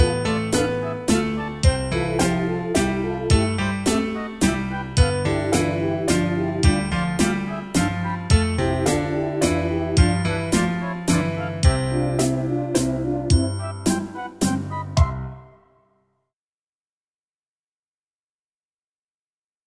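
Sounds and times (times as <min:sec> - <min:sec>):
waltz music: 0:00.0 - 0:15.5.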